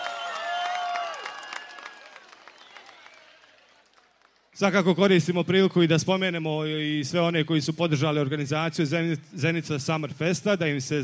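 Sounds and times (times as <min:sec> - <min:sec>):
audience whistles and shouts: 0:00.0 - 0:03.8
audience applause and cheering for a DJ at Zenica Summerfest: 0:00.0 - 0:04.5
speech: 0:04.6 - 0:11.0.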